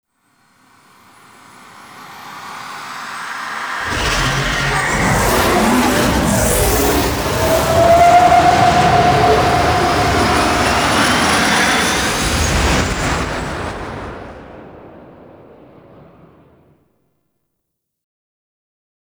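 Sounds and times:
space extraction vehicles: 2.4s - 16.6s.

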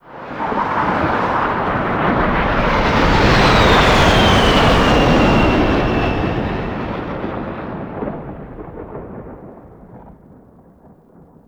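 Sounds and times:
plane flying by: 0.0s - 8.6s.

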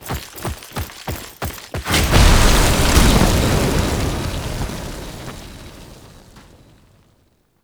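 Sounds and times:
jetpack: 0.0s - 5.4s.

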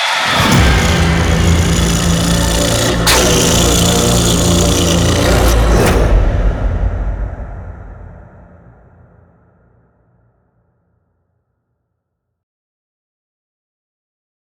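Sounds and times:
outro sound effect: 0.1s - 9.2s.

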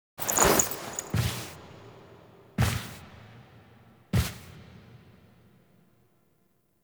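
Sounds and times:
foley sounds: 0.2s - 1.5s.

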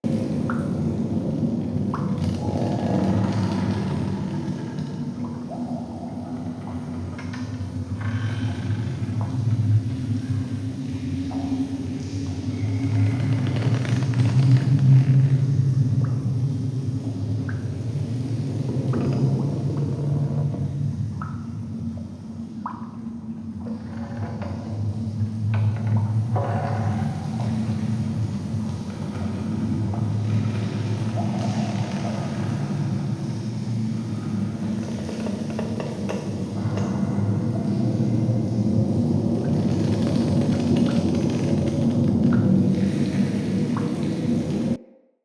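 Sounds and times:
root cave ambience: 0.1s - 44.9s.

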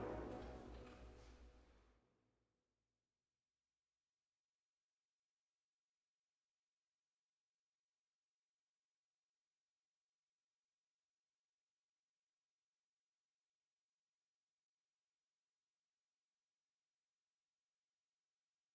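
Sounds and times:
heavy brass: 0.0s - 1.4s.

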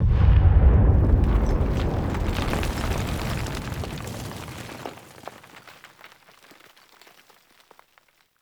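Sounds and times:
battle ambient tunnel rumble: 0.0s - 4.3s.

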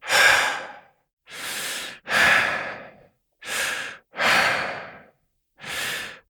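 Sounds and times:
adult breathing heavily and slowly: 0.0s - 6.2s.

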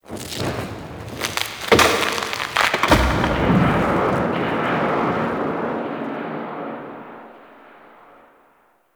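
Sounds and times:
distant tree falling in a forest: 0.0s - 8.7s.

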